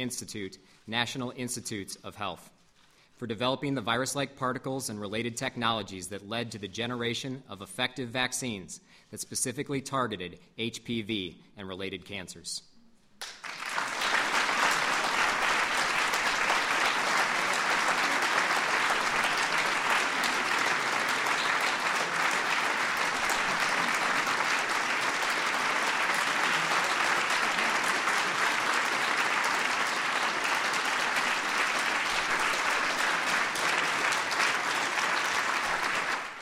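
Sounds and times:
speech: 0:00.0 - 0:02.6, 0:03.2 - 0:13.6
audience applause: 0:13.2 - 0:36.4.

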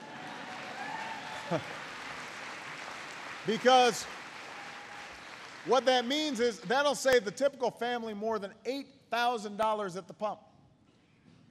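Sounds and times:
audience applause: 0:00.0 - 0:06.9
speech: 0:01.5 - 0:01.8, 0:03.4 - 0:04.2, 0:05.6 - 0:10.5.

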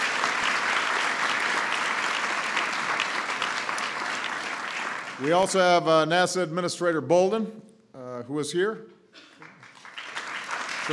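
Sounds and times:
audience applause: 0:00.0 - 0:05.8, 0:09.4 - 0:10.9
speech: 0:05.2 - 0:09.3.

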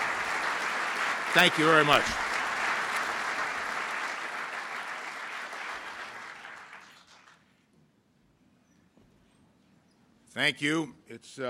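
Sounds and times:
audience applause welcoming Secretary of Defense Chuck Hagel: 0:00.0 - 0:07.4
speech: 0:01.3 - 0:02.2, 0:10.4 - 0:11.4.

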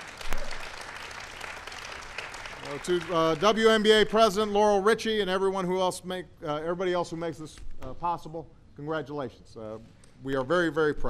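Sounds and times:
audience applause at a WNBA Seattle Storm celebration: 0:00.0 - 0:03.9
speech: 0:02.7 - 0:11.0.

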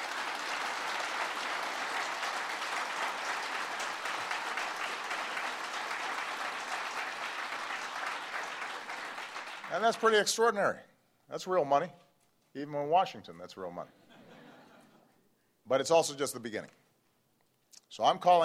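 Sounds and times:
audience applause: 0:00.0 - 0:10.2
speech: 0:09.7 - 0:14.0, 0:15.7 - 0:16.8, 0:17.9 - 0:18.4
laughter: 0:14.0 - 0:15.2.

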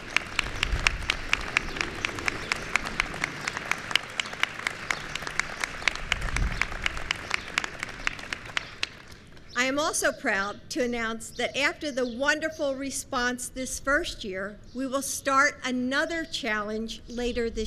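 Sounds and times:
audience applause: 0:00.0 - 0:09.1
speech: 0:09.8 - 0:17.6.

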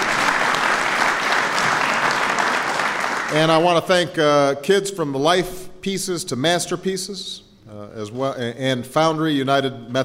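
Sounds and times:
round of applause: 0:00.0 - 0:03.7
speech: 0:03.3 - 0:10.0.

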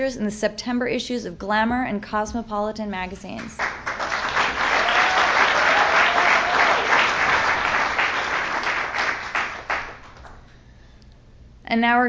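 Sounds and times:
speech: 0:00.0 - 0:03.7, 0:11.7 - 0:12.0
audience applause: 0:03.6 - 0:10.4.

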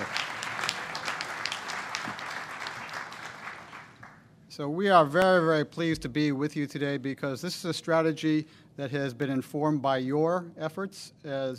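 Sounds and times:
audience applause: 0:00.0 - 0:04.2
speech: 0:04.6 - 0:11.5.

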